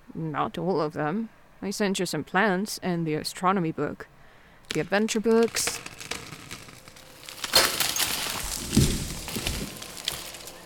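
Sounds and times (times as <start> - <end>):
speech: 0.2 - 4.1, 4.7 - 5.9
smaller pieces clattering: 4.7 - 10.6
wooden door bursting apart: 4.7 - 10.6.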